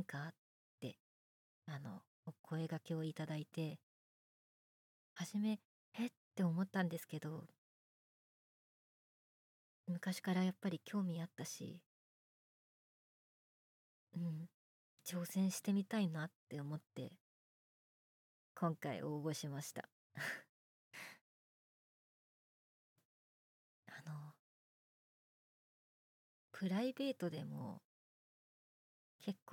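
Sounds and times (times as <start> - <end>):
boyish new female voice actress performing: 0.0 - 1.0, 1.7 - 3.8, 5.2 - 7.6, 9.9 - 11.8, 14.2 - 17.2, 18.6 - 20.4, 23.9 - 24.4, 26.6 - 27.8, 29.2 - 29.5.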